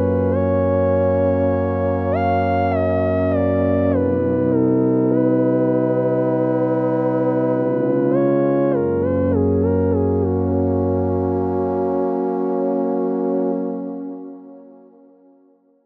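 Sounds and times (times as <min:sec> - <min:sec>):
overtone scale song in 24 NEJI128 tuning: 0:00.0 - 0:15.2.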